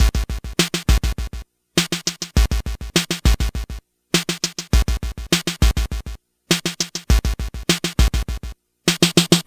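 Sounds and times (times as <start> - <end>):
Game Boy drum break loop: 0.0 - 9.4.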